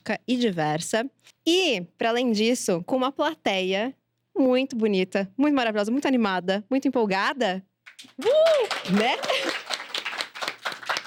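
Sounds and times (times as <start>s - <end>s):
speech: 0.1s - 9.6s
audience clapping: 7.8s - 11.0s.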